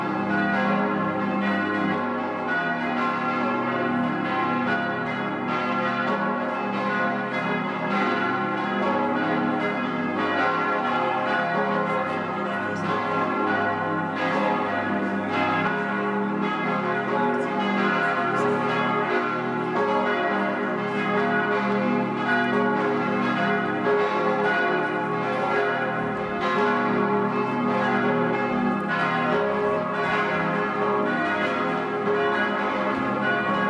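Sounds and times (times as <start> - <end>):
bells ringing in Andechs: 0.0 - 33.6.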